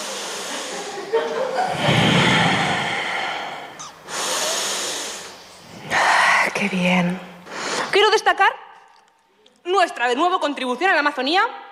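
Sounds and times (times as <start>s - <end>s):
group of people breathing in together: 0.0s - 6.5s, 7.4s - 8.0s
speech: 6.6s - 7.3s, 8.0s - 8.6s, 9.7s - 11.6s.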